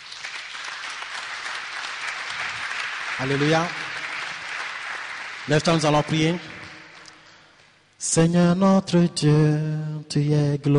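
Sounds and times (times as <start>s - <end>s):
church congregation applauding for the Lord Jesus: 0.0s - 7.8s
speech: 3.2s - 3.8s, 5.5s - 6.6s, 8.0s - 10.7s.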